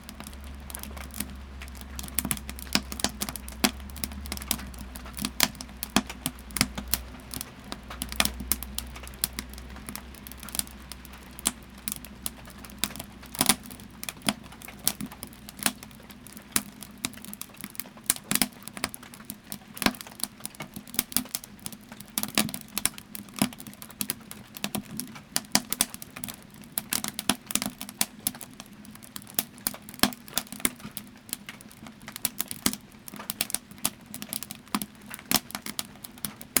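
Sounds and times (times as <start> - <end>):
rain on a cabin porch: 0.0 - 36.5
wood stove in a cabin: 0.0 - 36.5.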